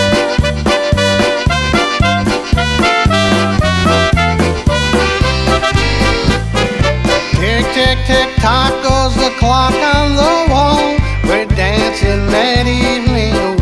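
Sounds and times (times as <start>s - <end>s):
polka music: 0.0s - 13.5s.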